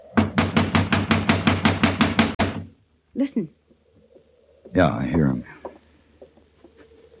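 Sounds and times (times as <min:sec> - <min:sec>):
knocking on a locked door: 0:00.2 - 0:02.7
speech: 0:03.2 - 0:03.6, 0:04.7 - 0:05.6.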